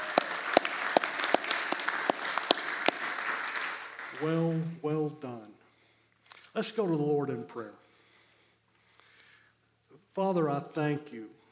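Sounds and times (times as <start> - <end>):
crowd clapping: 0.0 - 4.8
speech: 4.2 - 5.6, 6.6 - 7.8, 10.2 - 11.4.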